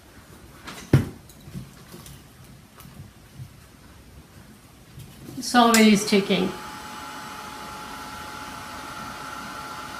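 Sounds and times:
speech: 5.4s - 6.6s
very hot arts and craft heat dryer blowing: 5.4s - 9.9s.

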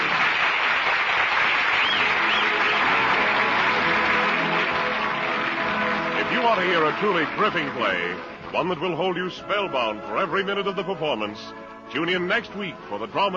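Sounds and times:
theater audience applauding after the final curtain: 0.0s - 8.1s
speech: 6.5s - 13.3s.

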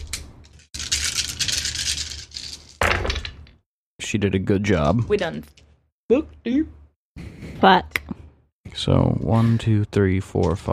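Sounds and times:
dice rolling in a dice tray: 0.8s - 3.3s
speech: 4.1s - 8.0s, 8.8s - 10.7s.

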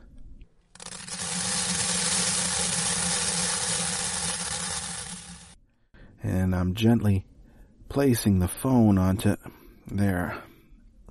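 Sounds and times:
dry rice being poured onto a plate: 0.8s - 5.6s
speech: 6.3s - 7.3s, 7.9s - 10.5s.

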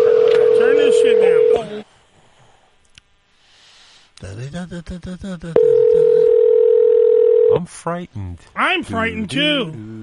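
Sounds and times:
telephone line ringing tone: 0.0s - 1.7s, 5.6s - 7.6s
speech: 4.7s - 6.5s, 7.5s - 10.0s.

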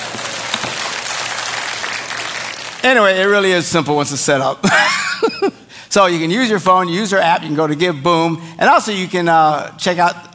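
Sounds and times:
audience applauding: 0.0s - 3.2s
speech: 2.8s - 10.3s.

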